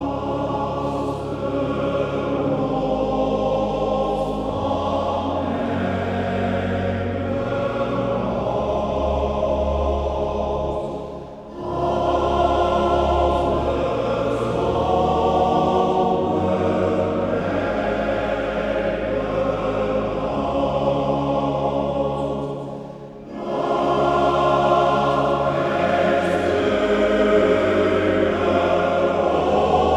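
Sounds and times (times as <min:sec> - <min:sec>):
male choir singing: 0:00.0 - 0:29.9.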